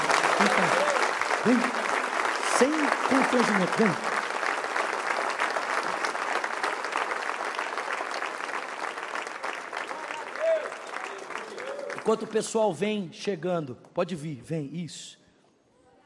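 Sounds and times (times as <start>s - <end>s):
audience applause: 0.0s - 12.4s
speech: 1.4s - 1.8s, 2.6s - 4.1s, 12.1s - 15.2s.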